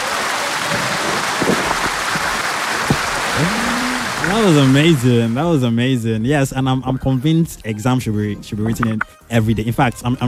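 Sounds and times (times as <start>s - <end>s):
applause: 0.0s - 5.4s
speech: 4.3s - 10.2s.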